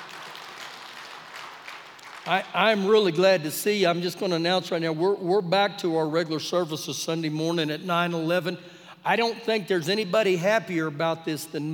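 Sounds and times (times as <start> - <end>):
audience clapping: 0.0 - 3.1
speech: 2.3 - 11.7.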